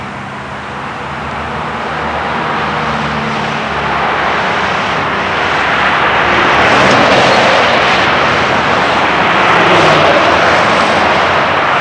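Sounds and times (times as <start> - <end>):
highway traffic: 0.0 - 11.7.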